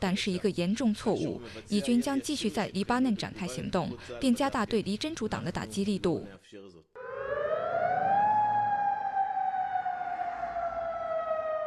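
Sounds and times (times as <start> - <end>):
speech: 0.0 - 7.0
air raid siren: 7.0 - 11.6.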